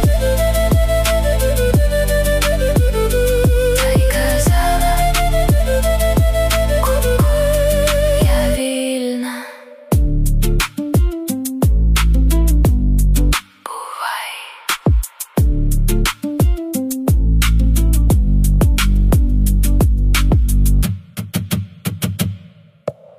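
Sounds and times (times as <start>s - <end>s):
Ukrainian ethno pop music: 0.0s - 23.1s.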